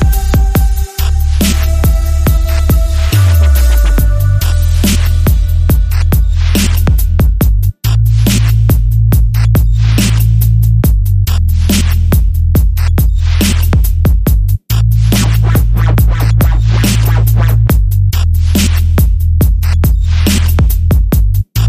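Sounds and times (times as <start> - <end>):
sub bass accent: 0.0 - 21.6.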